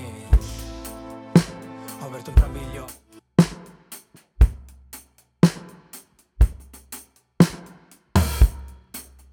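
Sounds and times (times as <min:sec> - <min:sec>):
pop music sample: 0:00.0 - 0:03.2.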